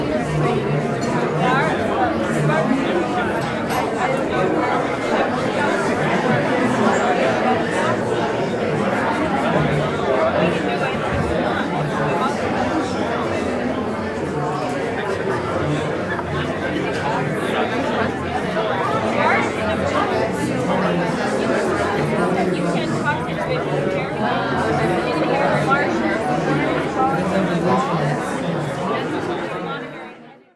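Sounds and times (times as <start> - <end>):
medium crowd walla in a university pub: 0.0 - 30.5.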